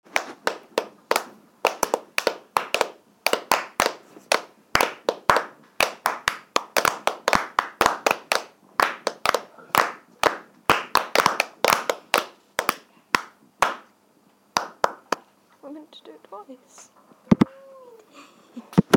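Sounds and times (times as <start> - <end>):
clapping: 0.2 - 13.9, 14.6 - 15.2.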